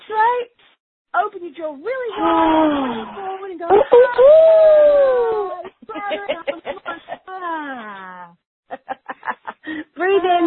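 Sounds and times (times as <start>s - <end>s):
speech: 1.3s - 8.4s
people yelling loudly: 3.7s - 5.6s
laughter: 5.2s - 8.0s, 8.7s - 10.4s.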